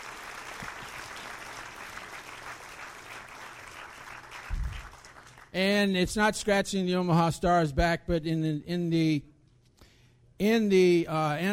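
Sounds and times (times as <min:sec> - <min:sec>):
audience applause: 0:00.0 - 0:05.5
speech: 0:05.5 - 0:09.3, 0:10.4 - 0:11.5.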